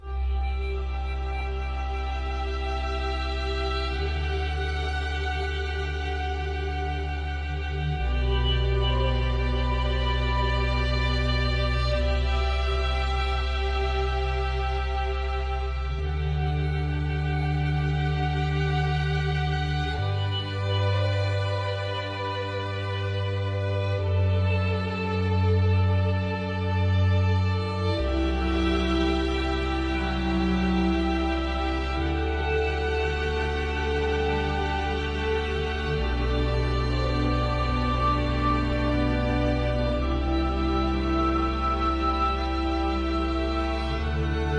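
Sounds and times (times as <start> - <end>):
ambient music: 0.0 - 44.5.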